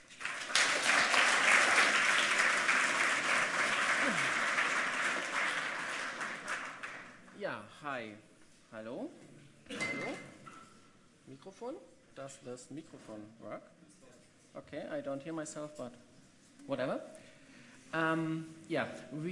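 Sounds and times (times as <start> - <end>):
audience applause: 0.0 - 7.2
speech: 7.9 - 10.3, 11.4 - 13.8, 14.6 - 16.0, 16.7 - 17.2, 17.9 - 19.3.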